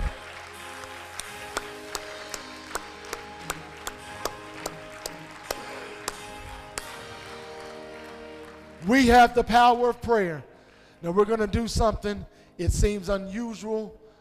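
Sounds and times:
audience clapping hands: 0.0s - 9.6s
speech: 8.9s - 14.0s.

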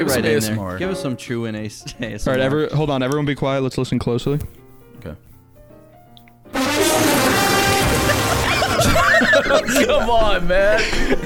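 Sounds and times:
speech: 0.0s - 5.3s, 9.4s - 11.2s
fart sound effect: 6.5s - 9.0s
laughter: 6.9s - 11.2s.

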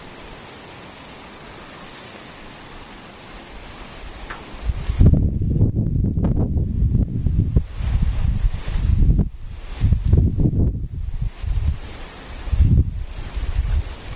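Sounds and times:
insects chirring: 0.0s - 14.1s
irregular low rumbling: 4.6s - 14.1s.

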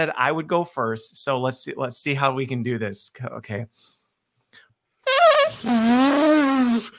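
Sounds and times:
speech: 0.0s - 4.6s, 5.5s - 6.9s
person imitating an elephant's trumpet with the voice: 5.1s - 6.9s.

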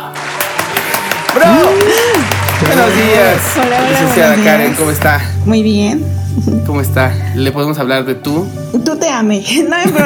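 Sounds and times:
audience applause: 0.0s - 5.2s
speech: 1.3s - 1.9s, 2.6s - 10.0s
laughter: 9.6s - 10.0s.

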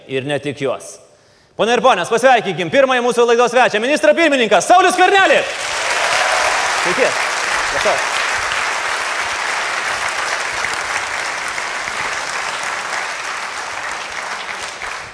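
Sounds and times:
speech: 0.1s - 1.0s, 1.6s - 5.7s, 6.8s - 8.1s
television studio audience applause for a prime minister: 5.5s - 15.1s.

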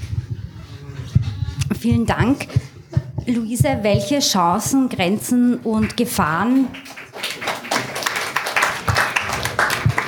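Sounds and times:
speech: 1.8s - 6.9s
audience applause: 6.5s - 10.0s.

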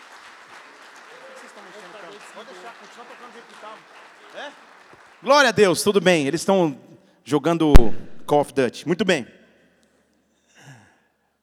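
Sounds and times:
audience applause: 0.0s - 6.1s
speech: 2.4s - 9.4s.

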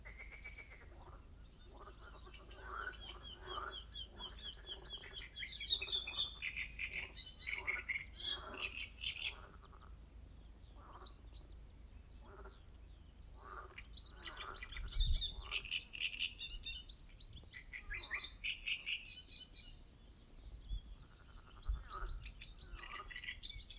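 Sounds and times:
bird chirps: 0.0s - 9.9s, 12.2s - 23.7s
frogs croaking: 0.0s - 10.0s, 12.2s - 12.6s, 13.4s - 16.4s, 21.0s - 23.7s
great reed warbler harsh chattering song: 0.1s - 9.9s, 13.4s - 19.9s, 20.9s - 23.7s.

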